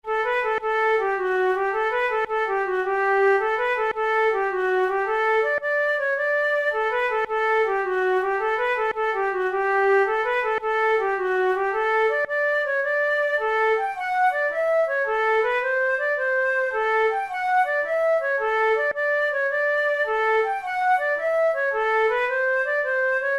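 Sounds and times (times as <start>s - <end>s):
flute playing a jig: 0.0s - 23.3s.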